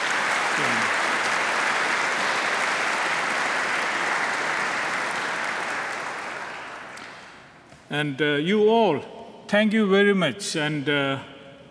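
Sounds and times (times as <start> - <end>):
round of applause: 0.0 - 7.6
speech: 7.9 - 11.6.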